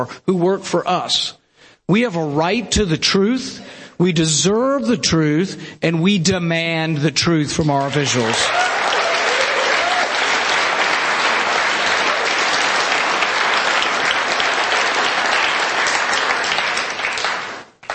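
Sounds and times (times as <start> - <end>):
speech: 0.0 - 8.6
audience applause: 7.8 - 17.9.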